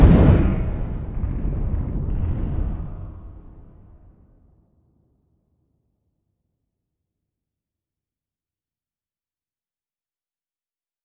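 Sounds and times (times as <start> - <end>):
magic bomb effect: 0.0 - 3.2.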